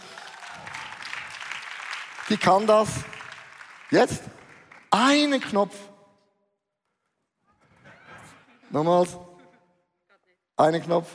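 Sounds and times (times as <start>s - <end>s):
audience applause: 0.0s - 5.2s
speech: 2.3s - 3.1s, 3.9s - 5.9s, 8.7s - 9.3s, 10.6s - 11.1s.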